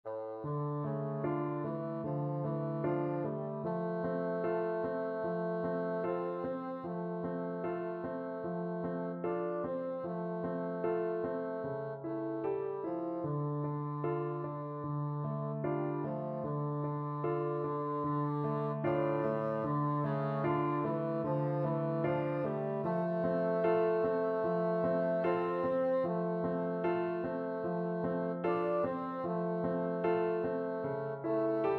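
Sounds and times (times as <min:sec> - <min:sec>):
bassoon: 0:00.1 - 0:31.7.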